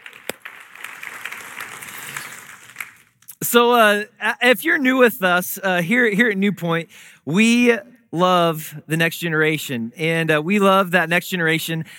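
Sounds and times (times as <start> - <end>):
church congregation applauding students at a morning adult service: 0.0 - 3.3
speech: 3.5 - 11.9.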